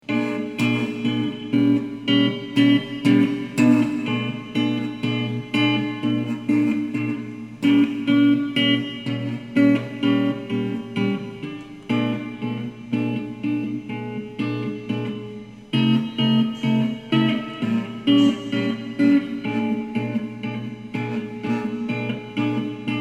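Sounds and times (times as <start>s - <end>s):
jazz blues music: 0.1s - 22.9s.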